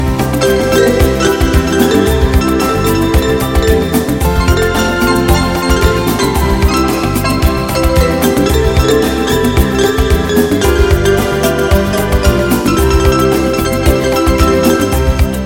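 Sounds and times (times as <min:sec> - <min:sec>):
pretty and smooth music: 0:00.0 - 0:15.4.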